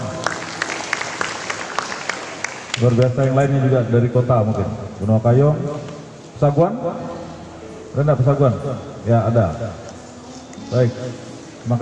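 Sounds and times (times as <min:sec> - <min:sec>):
audience applause: 0:00.0 - 0:03.4
speech: 0:02.8 - 0:05.8, 0:06.4 - 0:07.1, 0:07.9 - 0:09.8, 0:10.7 - 0:11.8.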